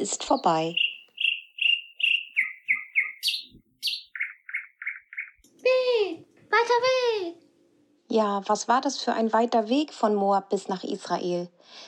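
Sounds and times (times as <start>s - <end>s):
speech: 0.0s - 0.8s, 6.5s - 7.4s, 8.1s - 11.8s
birds chirping in the morning: 0.0s - 5.5s.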